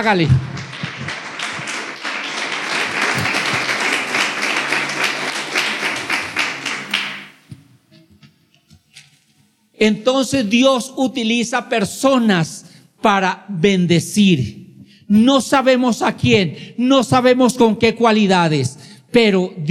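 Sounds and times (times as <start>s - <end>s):
speech: 0.0s - 0.5s, 9.8s - 19.6s
audience applause: 0.4s - 7.4s.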